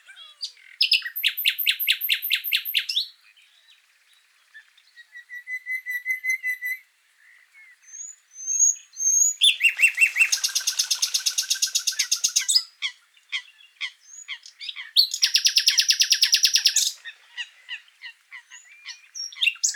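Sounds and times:
common nightingale song: 0:00.0 - 0:19.7.

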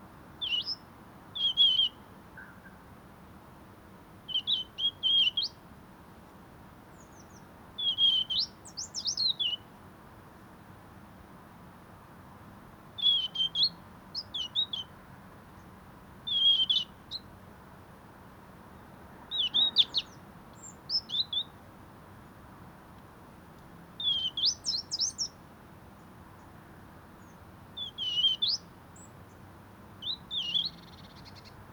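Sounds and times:
European robin singing: 0:00.4 - 0:02.7, 0:04.3 - 0:05.6, 0:06.9 - 0:09.7, 0:13.0 - 0:14.9, 0:16.3 - 0:17.3, 0:19.3 - 0:21.6, 0:24.0 - 0:25.4, 0:27.2 - 0:29.4, 0:30.0 - 0:31.6.

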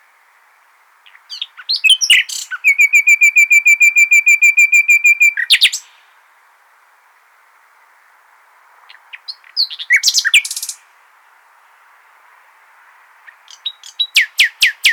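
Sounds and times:
Common nightingale singing repeated whistled notes: 0:01.1 - 0:06.0, 0:08.9 - 0:10.8, 0:13.3 - 0:14.9.

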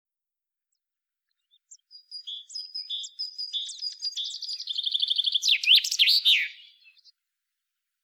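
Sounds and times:
common chaffinch Fringilla coelebs singing: 0:01.4 - 0:07.1.

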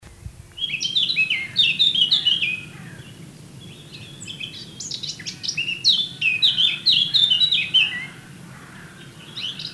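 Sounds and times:
background hiss: 0:00.0 - 0:09.7
Eurasian blackcap singing: 0:00.5 - 0:08.2.

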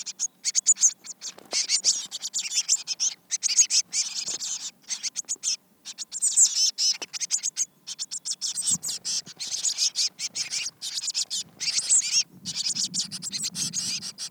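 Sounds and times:
Eurasian blue tit Cyanistes caeruleus churring and chattering calls: 0:00.0 - 0:14.2.

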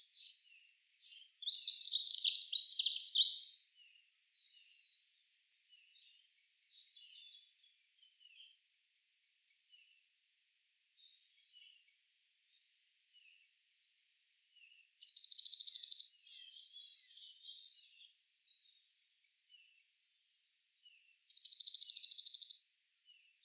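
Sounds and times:
Eurasian blue tit (Cyanistes caeruleus) giving rapid high buzzy trills: 0:01.3 - 0:03.4, 0:15.1 - 0:17.0, 0:21.3 - 0:22.6.

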